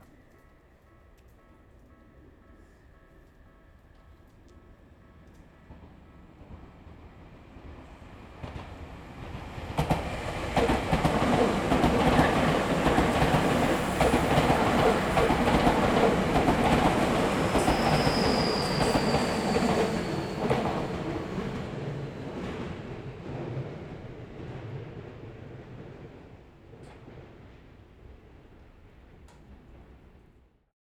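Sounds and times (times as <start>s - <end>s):
train: 0.0s - 30.7s.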